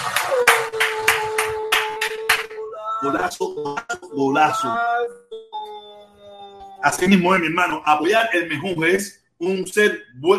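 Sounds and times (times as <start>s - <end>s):
clapping applause: 0.0s - 2.6s
speech: 3.0s - 5.4s, 6.8s - 10.3s.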